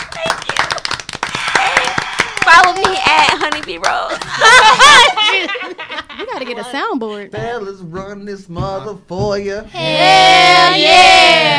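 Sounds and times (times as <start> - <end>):
audience clapping: 0.0 - 5.2
laughter: 4.1 - 7.4
speech: 6.3 - 11.5.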